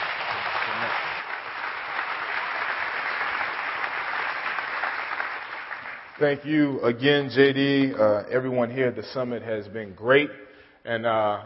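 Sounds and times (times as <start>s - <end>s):
church audience applause welcoming a pastor: 0.0s - 6.4s
speech: 6.2s - 11.4s.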